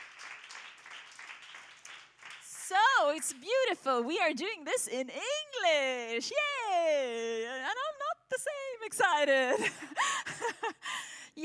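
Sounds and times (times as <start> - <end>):
audience applause in a church: 0.0 - 3.4
speech: 3.0 - 7.8, 8.4 - 10.8.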